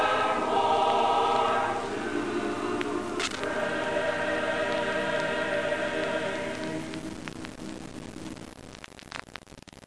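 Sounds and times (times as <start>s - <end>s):
choir singing an alma mater: 0.0s - 7.0s.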